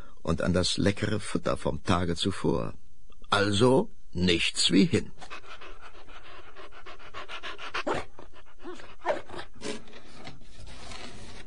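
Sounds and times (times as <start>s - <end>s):
speech: 0.3s - 5.5s
female dog panting: 5.2s - 9.2s
female dog whining: 7.8s - 9.6s.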